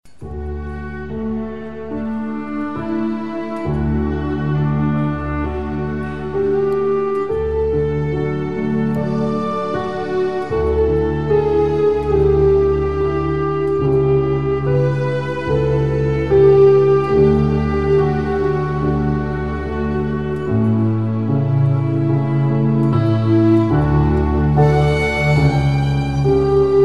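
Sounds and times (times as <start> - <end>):
piano and strings: 0.1 - 26.8.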